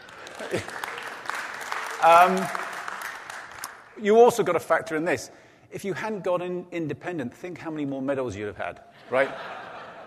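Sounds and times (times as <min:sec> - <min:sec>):
audience applause: 0:00.0 - 0:03.9
laughter: 0:00.1 - 0:01.0, 0:09.0 - 0:10.0
speech: 0:00.5 - 0:00.8, 0:02.0 - 0:02.6, 0:04.0 - 0:09.6.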